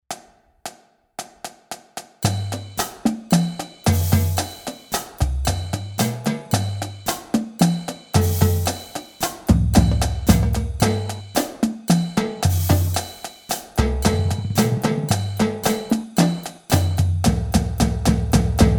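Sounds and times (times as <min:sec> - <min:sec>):
drumline accent tap exercise: 0:00.1 - 0:18.7.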